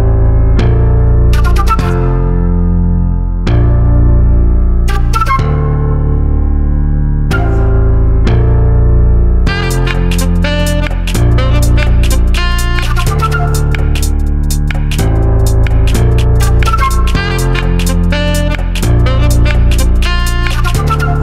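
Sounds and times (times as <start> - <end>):
piano: 0.0 - 21.2
saxophone: 1.3 - 2.4, 9.5 - 21.2
snappy flute groove: 1.3 - 2.5, 4.9 - 6.6, 7.3 - 8.1, 9.5 - 21.2.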